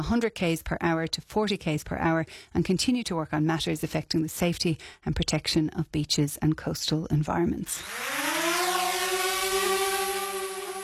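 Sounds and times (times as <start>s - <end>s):
speech: 0.0s - 8.6s
drone buzzing overhead: 7.8s - 10.8s.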